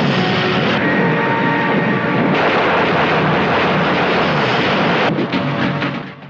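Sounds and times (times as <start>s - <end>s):
roaring WWI plane engine in a war film: 0.0s - 6.2s
rumbling bursts of German gunfire in a war film: 2.2s - 5.2s.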